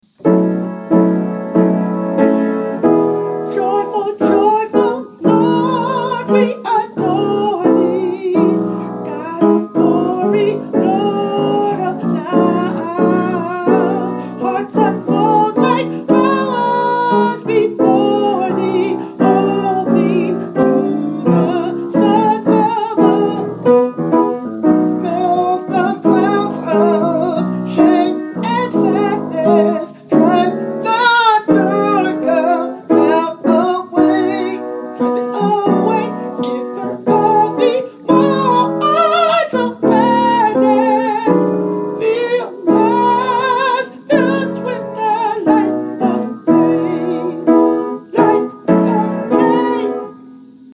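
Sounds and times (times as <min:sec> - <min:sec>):
soprano singing: 0:00.2 - 0:50.7.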